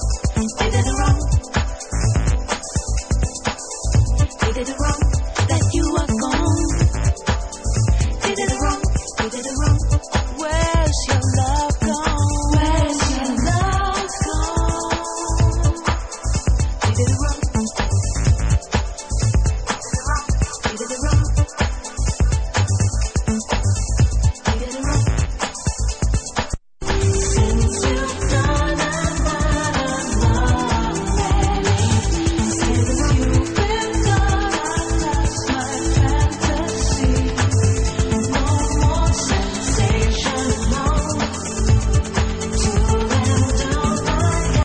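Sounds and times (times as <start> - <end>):
vocals: 0.0 - 26.0, 26.8 - 44.6.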